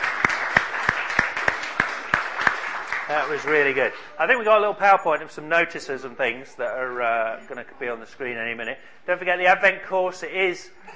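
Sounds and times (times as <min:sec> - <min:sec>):
church congregation clapping a round of applause: 0:00.0 - 0:04.6
speech: 0:03.1 - 0:10.9.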